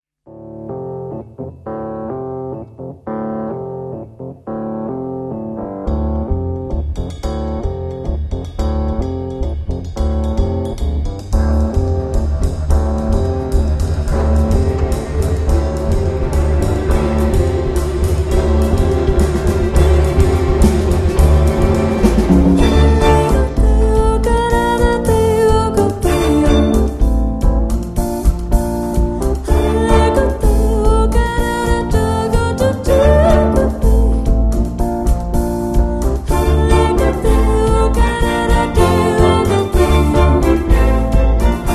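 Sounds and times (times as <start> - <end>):
jazz music: 0.3 - 41.7.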